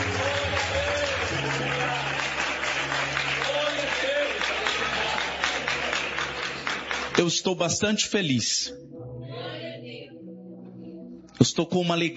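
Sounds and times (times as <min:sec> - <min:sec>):
audience applause: 0:00.0 - 0:07.6
speech: 0:07.2 - 0:08.8, 0:11.5 - 0:12.1.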